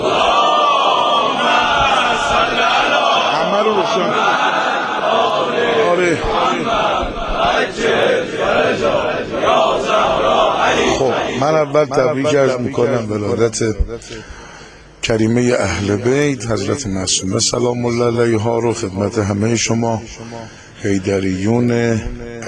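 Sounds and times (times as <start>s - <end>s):
crowd chanting salawat in unison at a religious gathering in Anzali: 0.0s - 13.0s
speech: 5.9s - 22.4s.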